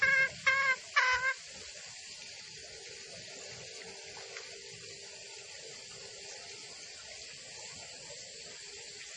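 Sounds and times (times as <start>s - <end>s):
female junglefowl call used as a lure for trapping in the forest: 0.0s - 1.4s.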